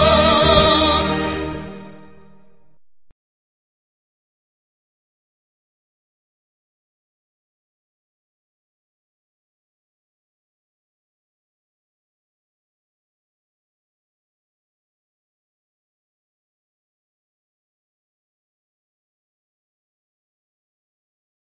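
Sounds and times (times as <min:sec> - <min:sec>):
town anthem: 0:00.0 - 0:03.0.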